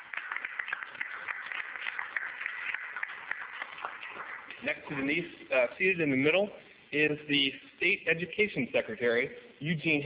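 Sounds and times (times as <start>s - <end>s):
audience applause: 0.0s - 4.8s
speech: 4.6s - 10.0s.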